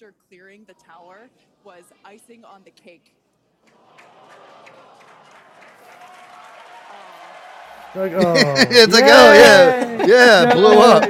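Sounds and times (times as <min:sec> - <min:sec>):
speech: 0:00.0 - 0:04.1, 0:07.9 - 0:11.0
laughter: 0:03.7 - 0:05.9, 0:07.9 - 0:11.0
crowd cheering and applauding at rocket launch: 0:03.7 - 0:11.0.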